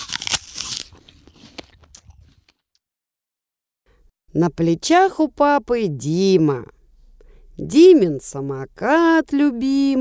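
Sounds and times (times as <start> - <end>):
crackling chews: 0.0 - 2.6
crunchy bite of a carrot: 0.0 - 2.6
speech: 4.4 - 6.8, 7.6 - 9.9.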